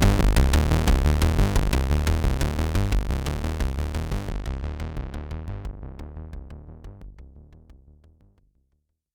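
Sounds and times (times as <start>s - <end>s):
Pro One and Monotribe synthesizers playing in sync: 0.0s - 7.0s.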